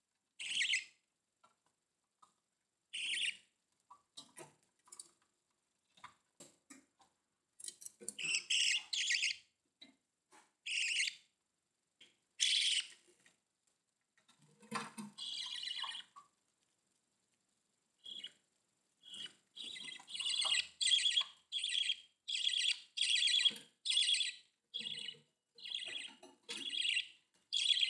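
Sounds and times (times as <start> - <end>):
budgerigar calling: 0.4 - 0.9, 3.0 - 3.4, 8.2 - 9.4, 10.7 - 11.2, 12.4 - 12.9, 15.2 - 16.2, 18.0 - 18.3, 19.0 - 27.8.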